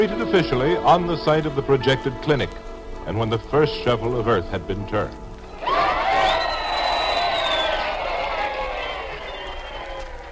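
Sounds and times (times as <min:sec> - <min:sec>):
speech: 0:00.0 - 0:05.8
crowd cheering: 0:05.4 - 0:10.3.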